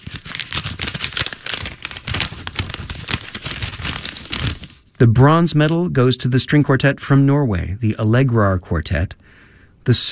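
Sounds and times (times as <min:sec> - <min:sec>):
envelope being opened at a chamber music competition award announcement: 0:00.0 - 0:05.0
speech: 0:05.0 - 0:09.2, 0:09.8 - 0:10.1.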